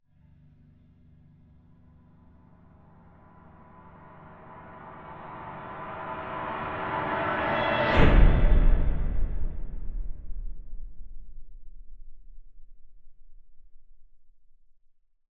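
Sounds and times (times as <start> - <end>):
swell into impact: 3.2 - 11.3.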